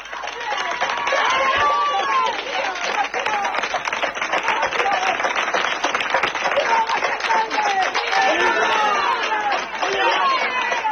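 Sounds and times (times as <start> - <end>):
village crowd shouting and jeering: 0.0 - 3.7, 6.5 - 10.8
village crowd rapid clapping: 0.0 - 10.8.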